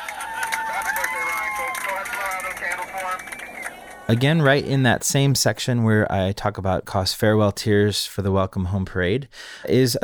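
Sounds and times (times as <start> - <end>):
airplane passengers clapping after landing: 0.0 - 4.7
airplane passengers cheering: 0.0 - 4.8
excited passenger voices in an airplane cabin: 0.0 - 4.8
speech: 2.7 - 10.0.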